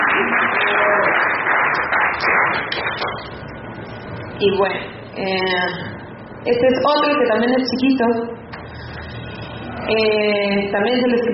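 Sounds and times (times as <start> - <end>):
audience applauding after a poem reading: 0.0 - 3.4
speech: 4.4 - 8.4, 9.9 - 11.3.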